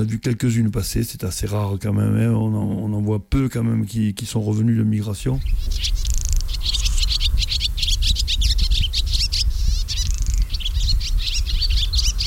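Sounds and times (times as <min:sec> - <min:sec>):
speech: 0:00.0 - 0:06.1
melodious warbler singing in bushes: 0:03.6 - 0:12.2.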